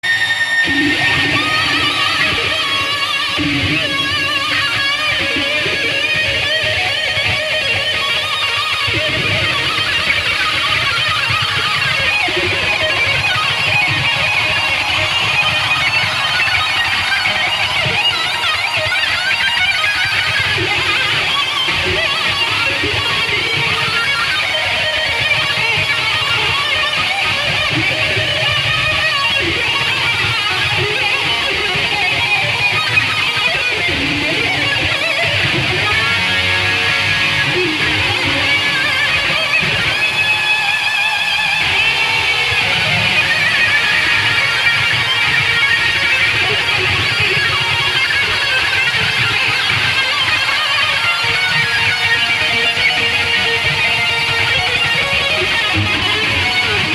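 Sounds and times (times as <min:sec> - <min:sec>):
guitar solo: 0:00.0 - 0:56.9.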